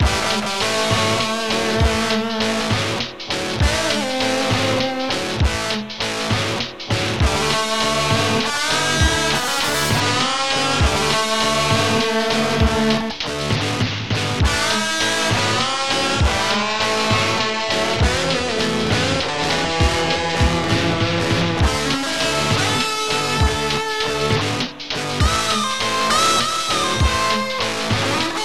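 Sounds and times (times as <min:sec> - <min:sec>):
blues music: 0:00.0 - 0:28.4.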